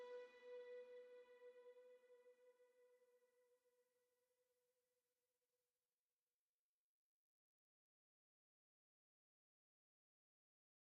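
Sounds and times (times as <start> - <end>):
strings: 0.0 - 2.5.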